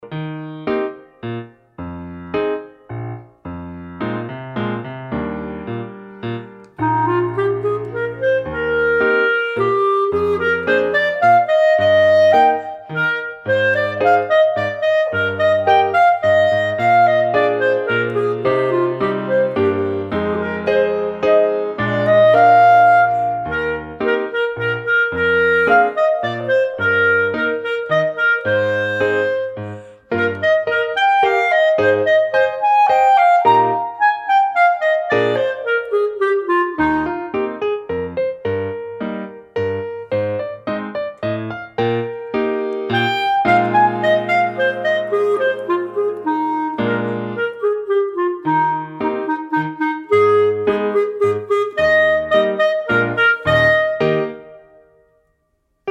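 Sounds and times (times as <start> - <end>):
clarinet: 0.0 - 55.8.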